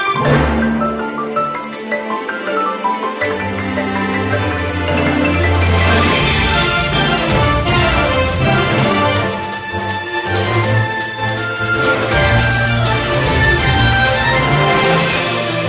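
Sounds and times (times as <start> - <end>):
battle background music: 0.1 - 2.2, 3.2 - 15.6.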